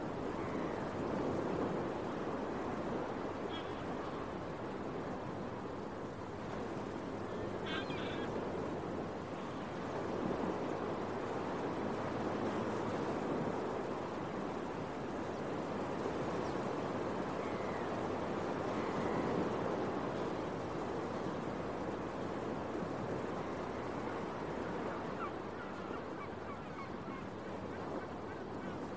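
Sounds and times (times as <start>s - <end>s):
beach waves washing in early morning: 0.0s - 28.9s
seagull calls in early morning: 7.4s - 8.3s, 24.9s - 28.9s.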